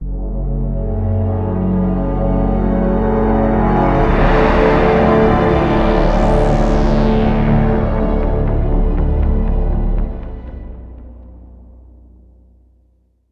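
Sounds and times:
evil music sting: 0.1s - 12.4s.

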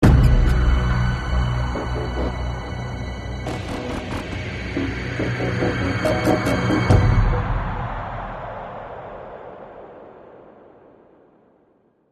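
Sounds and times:
suspense music: 0.0s - 8.2s.

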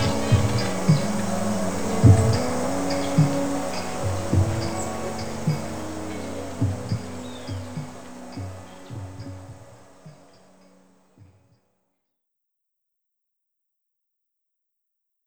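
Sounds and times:
jungle ambience: 0.0s - 11.5s.

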